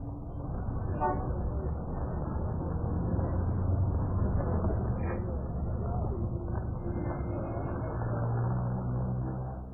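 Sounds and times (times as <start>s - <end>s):
city ambience: 0.0s - 9.7s.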